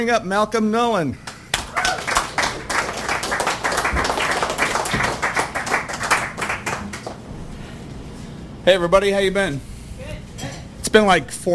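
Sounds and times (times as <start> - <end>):
speech: 0.0 - 1.3, 8.7 - 9.7, 10.9 - 11.5
audience applause at a poetry reading: 1.3 - 7.3.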